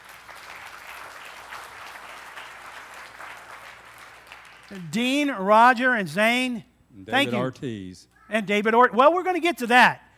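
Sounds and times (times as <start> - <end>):
audience applause: 0.0 - 4.9
speech: 4.7 - 10.0.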